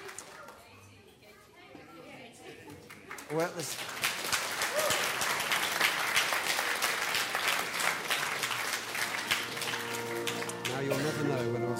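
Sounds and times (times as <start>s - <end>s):
church congregation applauding the choir members: 0.0s - 0.6s, 2.9s - 11.7s
speech: 3.3s - 4.1s.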